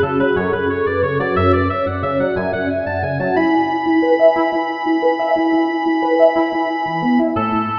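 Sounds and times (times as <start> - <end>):
oboe whistle remix: 0.2 - 7.7.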